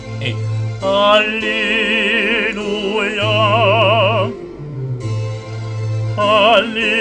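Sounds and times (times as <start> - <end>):
choral singing of an alleluia: 0.2 - 4.4, 6.2 - 7.0.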